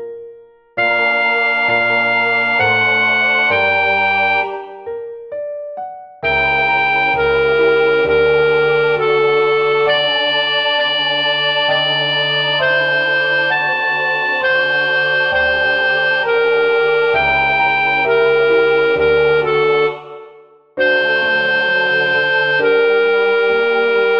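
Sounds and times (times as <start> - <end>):
sopranos singing: 0.8 - 4.9, 6.3 - 24.1.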